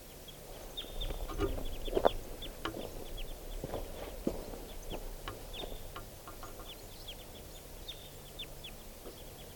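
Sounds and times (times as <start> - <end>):
lone wild bird giving short high-pitched clucking calls: 0.3 - 9.5.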